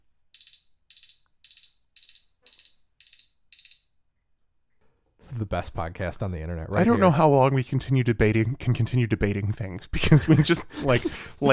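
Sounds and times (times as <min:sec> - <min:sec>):
timer going off: 0:00.4 - 0:04.0
speech: 0:05.3 - 0:11.5.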